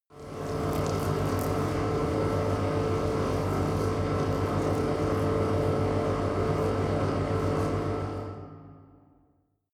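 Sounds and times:
machine room hum with reverb: 0.2s - 8.6s.

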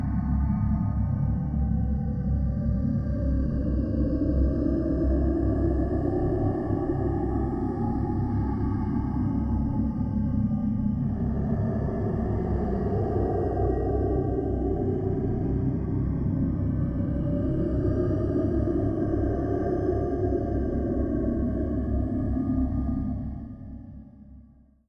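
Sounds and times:
low evil magic drone: 0.0s - 24.3s.

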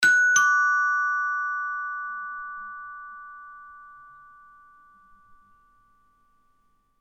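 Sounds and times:
doorbell: 0.0s - 5.6s.

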